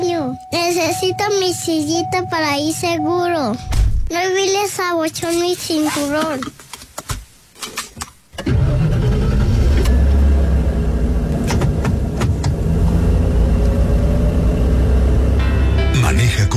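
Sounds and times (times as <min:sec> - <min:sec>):
speech: 0:00.4 - 0:06.6
car engine cranking and starting: 0:08.4 - 0:16.5.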